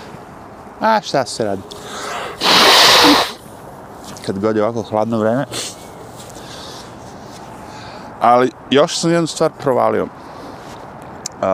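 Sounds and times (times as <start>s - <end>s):
speech: 0.8s - 3.2s, 4.3s - 5.7s, 8.2s - 10.2s
quiet breathing: 1.7s - 2.4s, 6.3s - 8.2s
person blowing nose into a handkerchief in cold weather: 2.0s - 3.4s.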